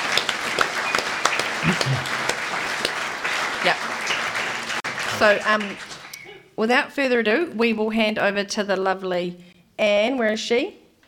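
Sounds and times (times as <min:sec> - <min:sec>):
audience applause: 0:00.0 - 0:06.2
speech: 0:01.6 - 0:02.2, 0:03.6 - 0:04.1, 0:05.2 - 0:05.9, 0:06.6 - 0:10.8.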